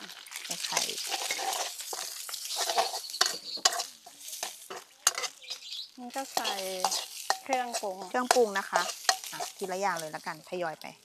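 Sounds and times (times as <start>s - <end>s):
rice with egg and garlic sizzling in a pan: 0.0s - 11.0s
spatula scraping a pan of rice fried with egg and garlic: 0.2s - 10.5s
speech: 0.6s - 1.6s, 6.0s - 11.0s.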